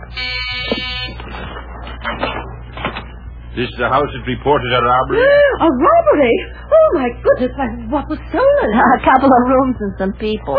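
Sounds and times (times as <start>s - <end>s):
doorbell buzzer at front door: 0.0s - 1.5s
speech: 3.6s - 10.5s.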